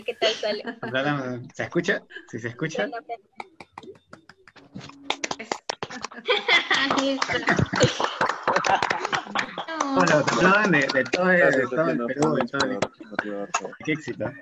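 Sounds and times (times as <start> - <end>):
laughter: 0.0 - 1.7, 3.4 - 14.4
speech: 0.0 - 4.1, 6.2 - 14.4
group applause over open microphones: 3.6 - 13.7.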